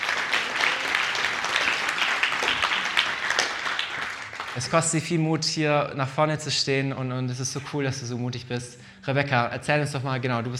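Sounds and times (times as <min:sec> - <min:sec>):
audience applause: 0:00.0 - 0:04.9
speech: 0:04.6 - 0:10.5.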